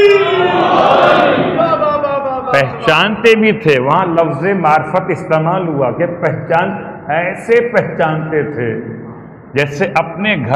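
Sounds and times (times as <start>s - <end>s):
crowd roaring in unison answering a religious slogan: 0.0s - 1.7s
speech: 2.6s - 10.5s.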